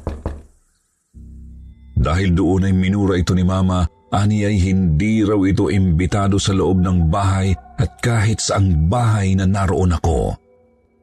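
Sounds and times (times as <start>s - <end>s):
heavy knocks on a door: 0.0s - 0.5s
low droning hum: 1.2s - 2.2s
speech: 2.0s - 10.4s.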